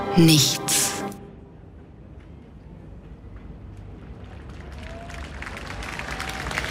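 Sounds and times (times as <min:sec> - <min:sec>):
speech: 0:00.2 - 0:00.9
outdoor crowd applause in the Donaupark for the Linzer Klangwolke: 0:04.1 - 0:06.7.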